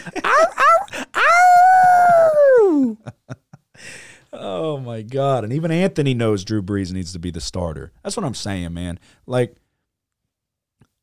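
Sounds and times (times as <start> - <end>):
person imitating howling: 0.2 - 3.0
speech: 5.1 - 9.6.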